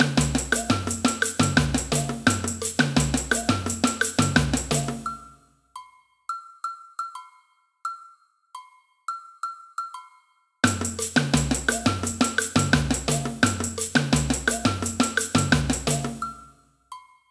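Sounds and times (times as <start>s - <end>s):
agogo bells in a samba band: 0.0s - 5.3s, 10.6s - 16.5s
samba band playing: 0.0s - 5.3s, 10.6s - 16.5s.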